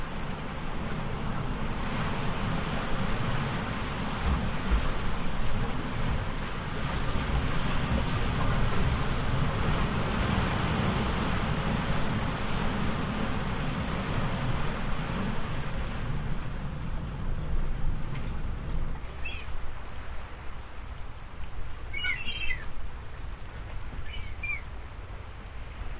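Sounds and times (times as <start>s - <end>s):
ocean waves: 0.0s - 25.9s.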